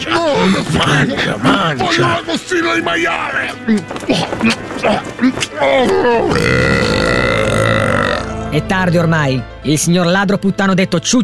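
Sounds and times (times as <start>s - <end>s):
speech: 0.2s - 7.8s, 8.5s - 11.2s
loud burping: 4.1s - 8.5s.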